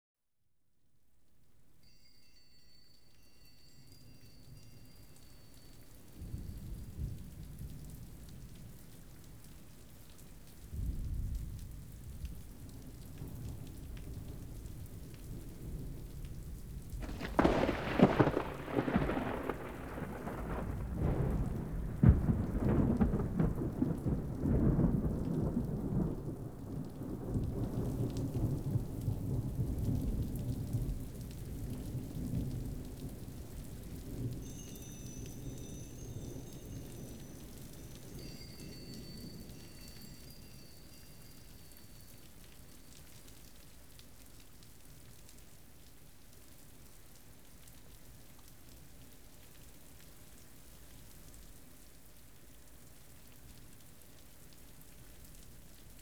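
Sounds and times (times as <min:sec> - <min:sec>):
rain: 0:01.8 - 0:56.0
thunder: 0:10.7 - 0:40.6.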